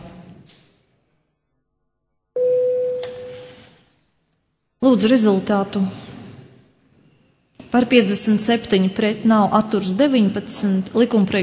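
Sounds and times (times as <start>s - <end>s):
room noise: 0.0s - 11.4s
parliamentary electronic voting bell tone: 2.4s - 3.8s
speech: 4.8s - 6.0s, 7.8s - 11.4s.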